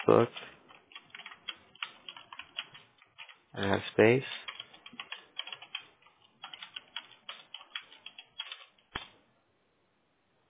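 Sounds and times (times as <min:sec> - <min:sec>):
speech: 0:00.0 - 0:00.5, 0:03.6 - 0:04.4
typing on a computer keyboard: 0:00.0 - 0:03.4, 0:04.4 - 0:09.1.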